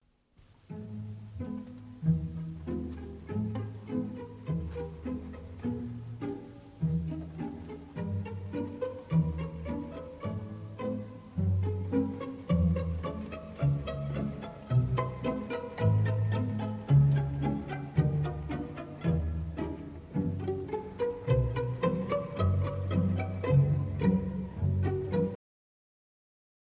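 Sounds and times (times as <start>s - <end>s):
ballet variation music: 0.4s - 25.4s.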